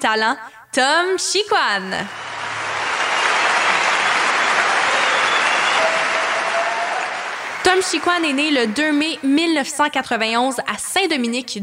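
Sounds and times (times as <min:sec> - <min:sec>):
speech: 0:00.0 - 0:02.3, 0:07.7 - 0:11.6
audience applause welcoming a singer at a 2022 cultural olympics event: 0:02.1 - 0:09.9.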